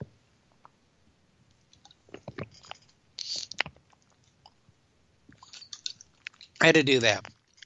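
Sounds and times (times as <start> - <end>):
person drinking water: 1.8 - 4.6, 5.3 - 6.6
speech: 6.6 - 7.3.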